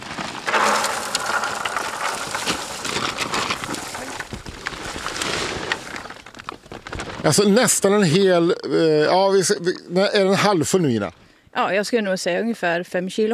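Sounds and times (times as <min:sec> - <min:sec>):
berries pouring into a crate: 0:00.0 - 0:07.4
speech: 0:07.3 - 0:13.3.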